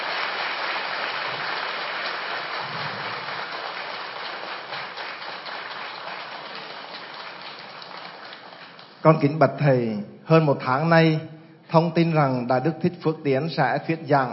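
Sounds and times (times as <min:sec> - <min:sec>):
audience applause: 0:00.0 - 0:09.0
speech: 0:09.0 - 0:14.3.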